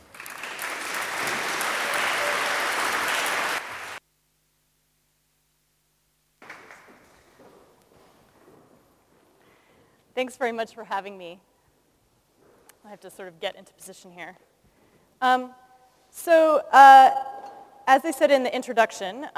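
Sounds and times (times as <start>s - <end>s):
audience applause welcoming a speaker: 0.0s - 4.0s
softer uneven noise: 0.0s - 19.3s
speech: 10.2s - 11.5s, 12.9s - 14.5s, 15.2s - 15.6s, 16.2s - 17.3s, 17.9s - 19.3s.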